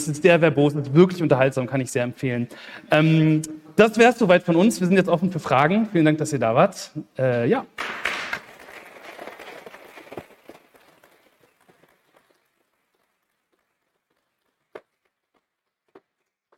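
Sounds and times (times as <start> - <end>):
speech: 0.0 - 8.1
audience applause after a talk: 7.8 - 15.6.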